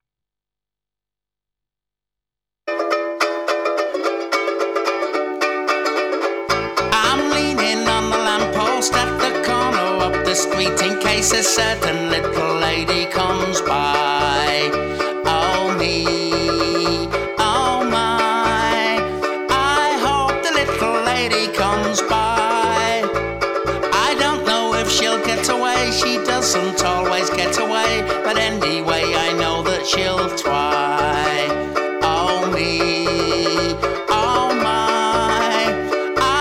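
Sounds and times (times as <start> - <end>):
bass: 3.2 - 36.4.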